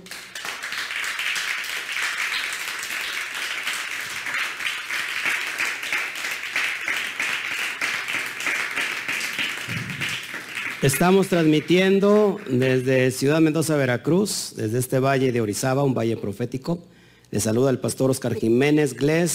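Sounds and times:
loud applause: 0.0 - 13.0
speech: 10.8 - 19.3.

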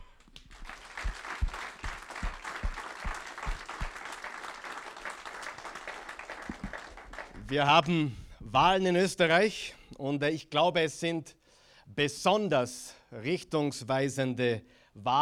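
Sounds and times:
audience applause: 0.0 - 7.8
speech: 7.5 - 11.4, 12.0 - 15.2.

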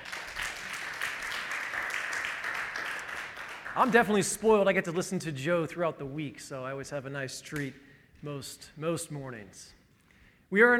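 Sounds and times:
audience applause: 0.0 - 4.2
speech: 3.8 - 9.8, 10.5 - 10.7.

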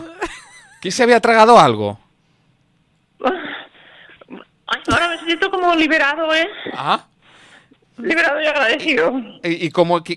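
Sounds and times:
speech: 0.8 - 2.0, 3.2 - 3.4, 5.3 - 7.1, 8.0 - 10.1
person coughing: 3.2 - 5.3.

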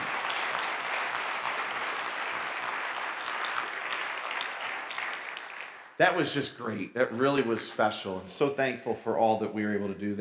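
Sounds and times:
audience applause: 0.0 - 6.0
speech: 6.0 - 10.1.

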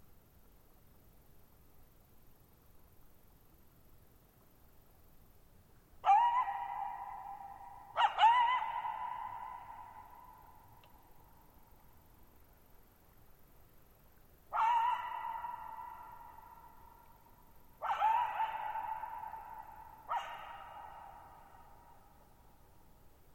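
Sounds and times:
coyote barking and yipping with echo at night: 6.0 - 10.6, 14.5 - 17.0, 17.8 - 22.1.

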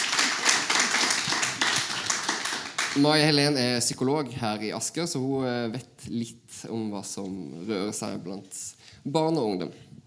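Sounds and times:
applause: 0.0 - 3.4
speech: 3.0 - 9.9.

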